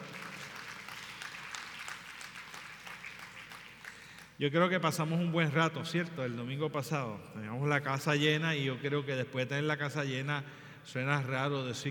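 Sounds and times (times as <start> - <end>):
group applause: 0.0 - 4.4
speech: 4.4 - 11.8.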